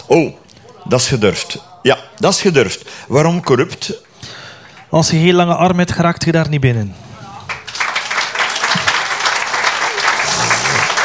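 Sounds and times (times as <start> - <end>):
speech: 0.1 - 7.0
crowd applauding: 7.3 - 11.0.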